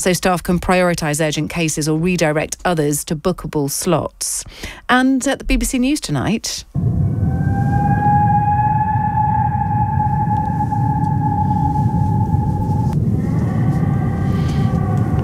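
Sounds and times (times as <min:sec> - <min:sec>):
speech: 0:00.0 - 0:07.0
low rumble: 0:06.7 - 0:15.2
whale calls: 0:06.8 - 0:15.2.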